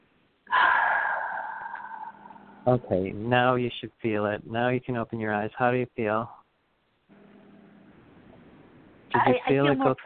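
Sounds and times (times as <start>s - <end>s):
deep breath in through the nose and out through the mouth during a guided relaxation: 0.5s - 2.7s
speech: 2.6s - 6.4s, 9.2s - 10.0s.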